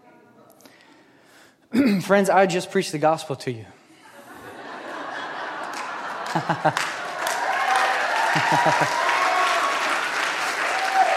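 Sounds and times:
speech: 0:01.7 - 0:03.8, 0:06.4 - 0:06.9, 0:08.4 - 0:09.1
laughter: 0:04.0 - 0:09.4
audience clapping: 0:05.3 - 0:11.1.

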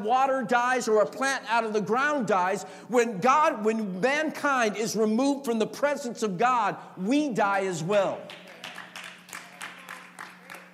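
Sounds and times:
speech: 0:00.0 - 0:08.4
audience clapping: 0:08.2 - 0:10.7.

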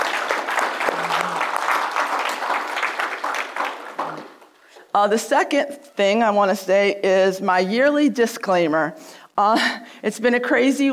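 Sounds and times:
audience applause: 0:00.0 - 0:04.6
speech: 0:05.0 - 0:10.9.

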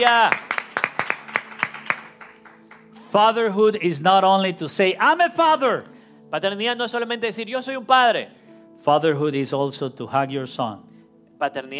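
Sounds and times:
speech: 0:00.0 - 0:00.5, 0:03.1 - 0:11.7
small group clapping during a bilingual church service: 0:00.0 - 0:03.1.

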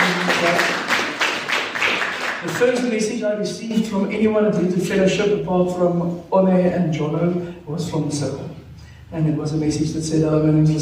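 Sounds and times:
hand clapping: 0:00.0 - 0:02.8
speech: 0:02.6 - 0:08.4, 0:09.1 - 0:10.8.

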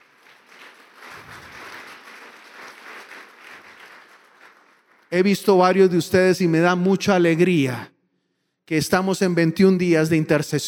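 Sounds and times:
audience applause: 0:00.0 - 0:05.1
speech: 0:05.1 - 0:07.9, 0:08.7 - 0:10.6.

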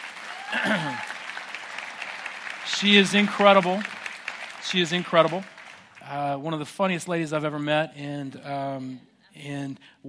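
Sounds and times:
audience round of applause: 0:00.0 - 0:06.2
speech: 0:00.5 - 0:01.1, 0:02.7 - 0:04.0, 0:04.7 - 0:10.0.

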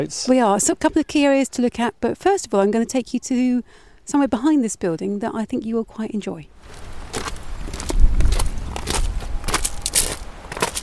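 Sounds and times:
speech: 0:00.0 - 0:07.3
steady noise: 0:00.0 - 0:10.8
footsteps walking up a hill outdoors: 0:06.6 - 0:10.8.

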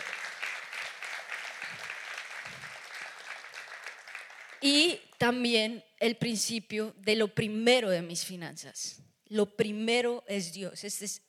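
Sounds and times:
crowd applauding: 0:00.0 - 0:04.6
speech: 0:04.6 - 0:11.2.

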